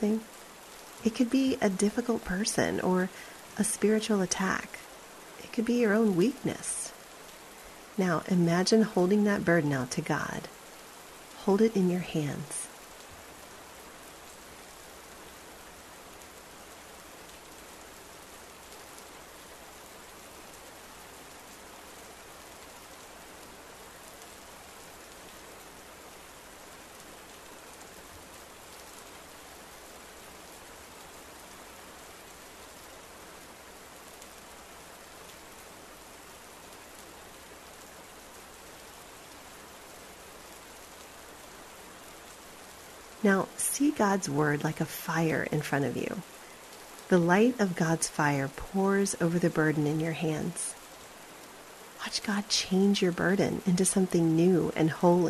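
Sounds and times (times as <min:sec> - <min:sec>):
speech: 0:00.0 - 0:00.4, 0:01.0 - 0:04.9, 0:05.6 - 0:06.8, 0:08.0 - 0:10.6, 0:11.4 - 0:12.6, 0:43.2 - 0:46.4, 0:47.1 - 0:50.8, 0:52.0 - 0:55.2
steady rainfall: 0:00.0 - 0:55.2.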